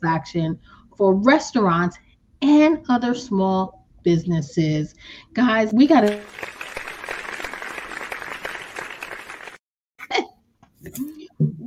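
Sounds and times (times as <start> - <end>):
speech: 0.0 - 6.6
applause welcoming a guest: 6.0 - 9.6.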